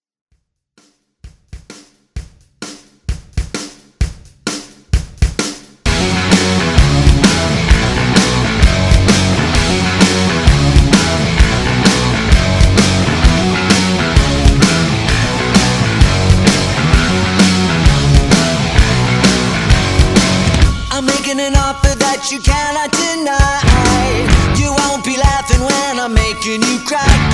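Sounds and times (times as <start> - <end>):
rock music: 5.2 - 27.3.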